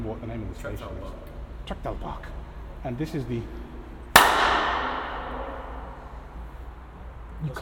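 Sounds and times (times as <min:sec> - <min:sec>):
speech: 0:00.1 - 0:03.6, 0:07.4 - 0:07.5
hand clap echoing in an underpass: 0:04.2 - 0:06.2.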